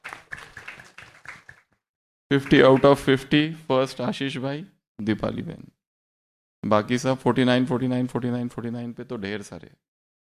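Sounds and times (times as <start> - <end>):
audience at a gathering clapping: 0.0 - 3.3
speech: 2.3 - 5.8, 6.6 - 9.9.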